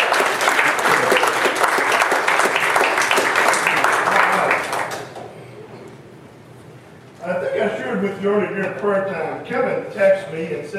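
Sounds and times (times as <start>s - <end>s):
audience applause: 0.0s - 5.3s
speech: 8.2s - 10.7s.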